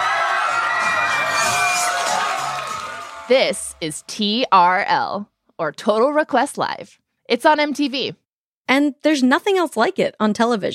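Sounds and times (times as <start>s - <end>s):
TRL studio audience of young fans screaming and cheering at MTV: 0.0s - 3.6s
speech: 3.3s - 10.7s.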